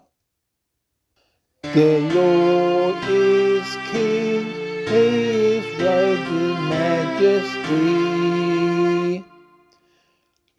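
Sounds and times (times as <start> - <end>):
vocal psalm singing: 1.7 - 9.7.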